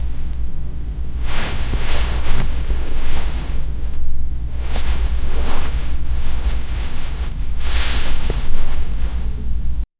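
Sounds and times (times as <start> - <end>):
sock toe gently caressing: 0.0 - 9.8.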